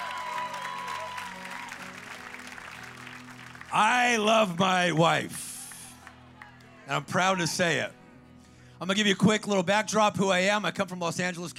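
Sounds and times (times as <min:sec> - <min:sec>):
audience applause: 0:00.0 - 0:07.4
speech: 0:03.7 - 0:05.5, 0:06.9 - 0:08.0, 0:08.8 - 0:11.5.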